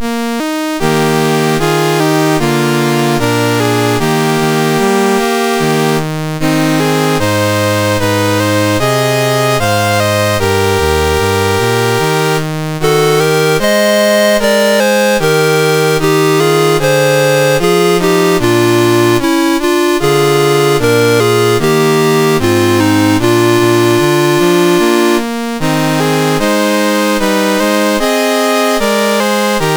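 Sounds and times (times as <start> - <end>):
national anthem on MOS6581R2 chip: 0.0 - 29.7.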